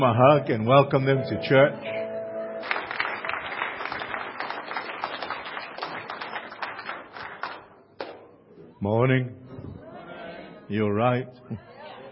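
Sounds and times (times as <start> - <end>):
speech: 0.0 - 2.0, 8.8 - 9.7, 10.7 - 11.7
church congregation clapping: 2.6 - 8.2.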